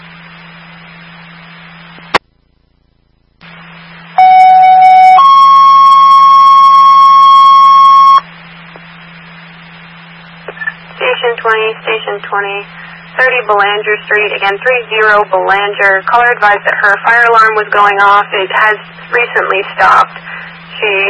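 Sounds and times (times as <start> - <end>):
radio static: 0.0 - 2.2, 3.4 - 4.4, 7.5 - 21.0
dispatch alert tone: 3.4 - 8.2
speech: 12.4 - 21.0.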